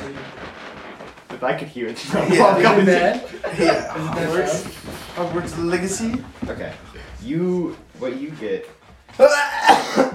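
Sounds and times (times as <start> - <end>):
speech: 1.4 - 10.1
person sneezing: 9.2 - 10.1.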